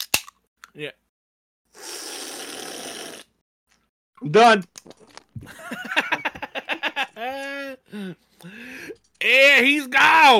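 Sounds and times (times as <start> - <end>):
speech: 0.8 - 1.0, 4.2 - 6.1, 7.2 - 10.3
loud slurping of a Monster energy drink: 1.7 - 3.4
laughter: 5.4 - 7.8.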